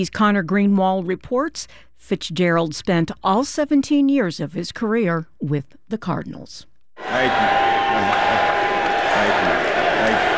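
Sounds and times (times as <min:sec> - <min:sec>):
speech: 0:00.0 - 0:07.6
crowd chanting and cheering at Larry Fitzgerald's induction ceremony: 0:07.0 - 0:10.3.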